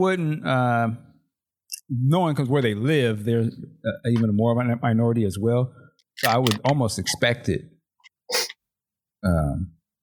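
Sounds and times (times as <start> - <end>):
speech: 0.0 - 1.1, 1.9 - 7.7, 9.2 - 9.8
nose sniffing: 8.3 - 8.6
voiced throaty nasal sound: 8.3 - 8.6.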